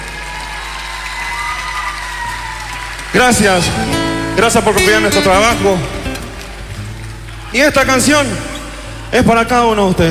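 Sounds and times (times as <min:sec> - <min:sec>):
applause: 0:00.0 - 0:08.1
speech: 0:03.1 - 0:06.0, 0:07.5 - 0:08.5, 0:09.1 - 0:10.1.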